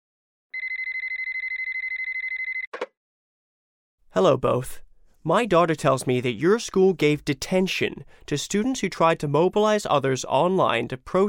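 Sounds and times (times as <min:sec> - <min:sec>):
telephone ringing for an incoming call: 0:00.6 - 0:02.7
speech: 0:04.2 - 0:11.2.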